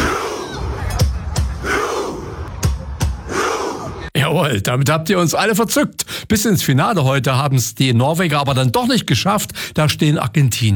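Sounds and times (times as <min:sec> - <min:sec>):
football fans roaring: 0:00.0 - 0:04.1
football fans' Viking battle chant claps and shouts: 0:00.0 - 0:04.1
speech: 0:04.3 - 0:10.7.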